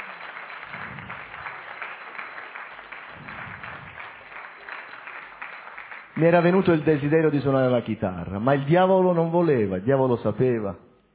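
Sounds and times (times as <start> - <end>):
audience applause: 0.0 - 7.1
speech: 6.2 - 10.8.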